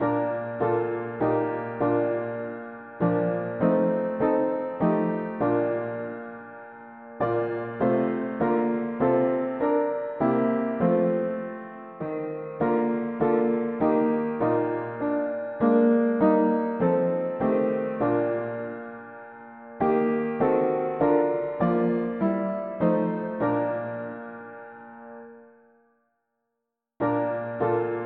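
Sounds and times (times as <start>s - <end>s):
mono piano: 0.0s - 25.9s, 27.0s - 28.0s.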